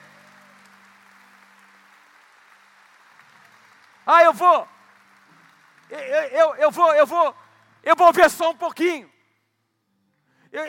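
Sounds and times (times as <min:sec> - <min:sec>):
audience applause: 0:00.0 - 0:07.8
speech: 0:04.1 - 0:04.7, 0:05.9 - 0:09.1.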